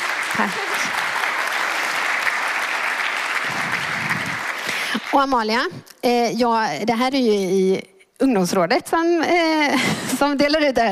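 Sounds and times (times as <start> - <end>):
audience applause: 0.0 - 5.3
speech: 0.4 - 0.8, 5.1 - 10.8.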